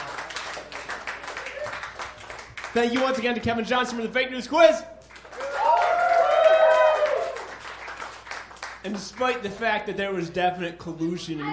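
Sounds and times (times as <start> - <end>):
people clapping: 0.0 - 3.6, 5.0 - 9.8
speech: 2.8 - 4.9, 8.8 - 11.5.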